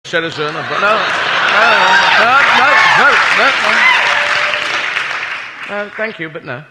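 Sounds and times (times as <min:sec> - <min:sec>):
speech: 0:00.1 - 0:04.0, 0:05.7 - 0:06.6
laughter: 0:00.1 - 0:05.1
audience applause during a live performance: 0:00.2 - 0:06.4
people calling out loudly: 0:01.5 - 0:04.6.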